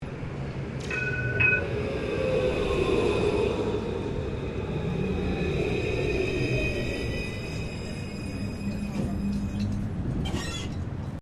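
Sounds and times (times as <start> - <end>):
Melbourne C Class tram stopping: 0.0 - 11.2.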